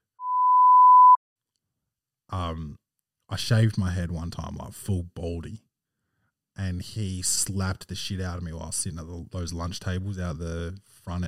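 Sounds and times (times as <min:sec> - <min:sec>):
censor bleep tone: 0:00.2 - 0:01.2
speech: 0:02.3 - 0:05.7, 0:06.6 - 0:11.2.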